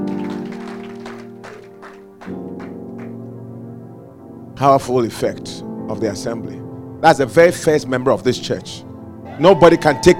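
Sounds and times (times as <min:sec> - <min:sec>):
group clapping in a steady rhythm: 0:00.0 - 0:03.2
loud sustained keyboard chords: 0:00.0 - 0:10.1
speech: 0:04.6 - 0:10.1.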